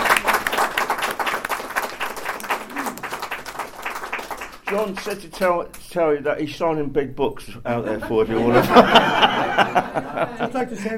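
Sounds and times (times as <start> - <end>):
audience clapping: 0.0 - 5.9
speech: 4.7 - 10.9
laughter: 7.7 - 10.9.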